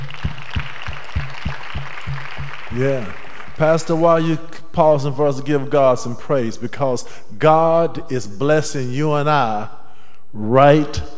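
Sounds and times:
audience hand clapping: 0.0s - 4.0s
speech: 2.8s - 11.1s.

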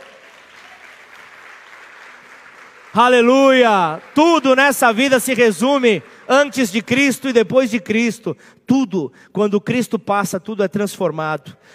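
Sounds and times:
audience applause: 0.0s - 6.8s
speech: 3.0s - 11.7s.

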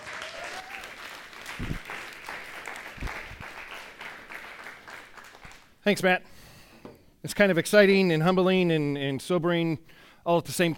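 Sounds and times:
audience clapping: 0.0s - 5.8s
speech: 5.8s - 6.4s, 7.2s - 10.7s.

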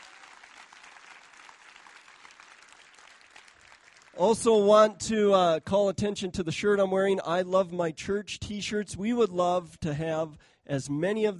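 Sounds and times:
crowd clapping: 0.0s - 4.5s
speech: 4.2s - 11.3s.

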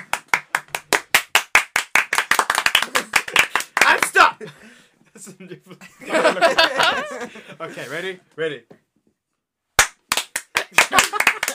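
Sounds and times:
hand clapping: 0.0s - 4.2s, 9.8s - 11.5s
laughter: 2.8s - 7.9s, 10.6s - 11.5s
speech: 4.4s - 8.8s.

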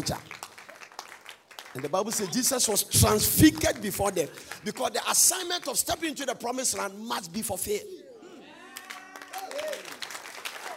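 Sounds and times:
speech: 0.0s - 0.3s, 1.8s - 8.0s
audience clapping: 0.0s - 6.0s, 8.7s - 10.7s.

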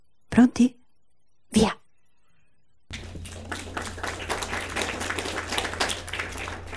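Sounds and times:
speech: 0.4s - 0.8s, 1.5s - 1.8s
children clapping hands: 2.9s - 6.7s.

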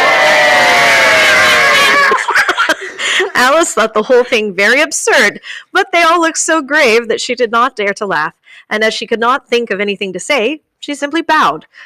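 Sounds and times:
crowd cheering during a storybook scene: 0.0s - 3.3s
laughter: 1.1s - 4.4s
speech: 3.4s - 11.8s.

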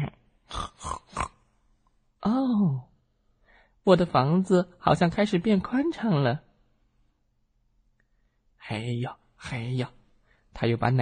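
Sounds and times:
person imitating pig grunts: 0.0s - 1.4s
speech: 3.9s - 6.5s, 8.7s - 10.0s, 10.6s - 11.0s.

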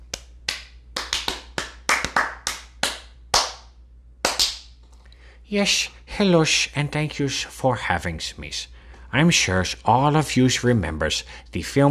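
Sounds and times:
sparse handclaps: 0.0s - 4.7s
speech: 5.5s - 11.8s.

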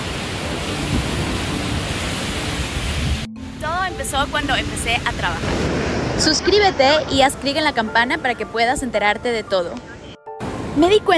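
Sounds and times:
ocean waves at a surfing beach in Bali: 0.0s - 11.1s
speech: 4.0s - 10.0s, 10.8s - 11.1s.

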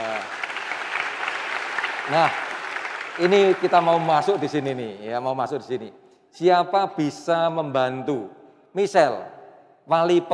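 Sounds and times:
audience applause: 0.0s - 4.8s
speech: 2.1s - 2.4s, 3.2s - 10.3s.

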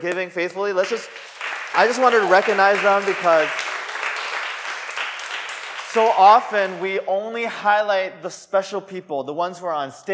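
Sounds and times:
speech: 0.0s - 3.6s, 6.0s - 10.1s
audience applauding: 0.8s - 7.0s.

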